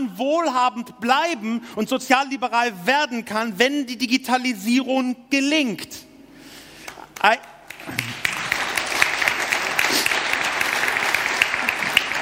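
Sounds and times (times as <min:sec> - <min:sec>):
speech: 0:00.2 - 0:06.1, 0:07.2 - 0:08.1
audience applause: 0:07.2 - 0:12.2.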